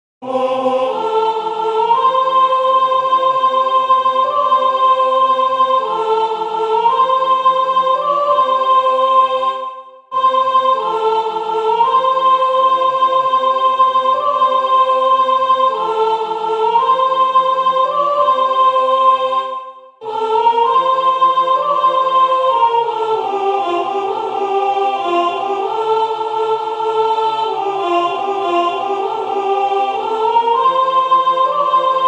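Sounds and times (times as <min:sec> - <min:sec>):
soprano singing: 0:00.2 - 0:32.0.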